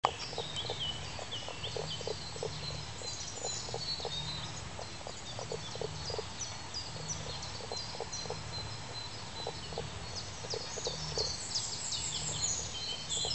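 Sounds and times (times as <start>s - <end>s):
Common spadefoot Pelobates fuscus calling in soft low clucks: 0.0s - 11.4s, 12.1s - 13.3s.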